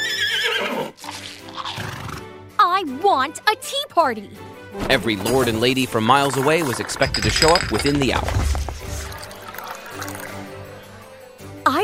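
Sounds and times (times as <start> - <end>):
pony neighing: 0.0 - 2.2
speech: 2.8 - 8.6.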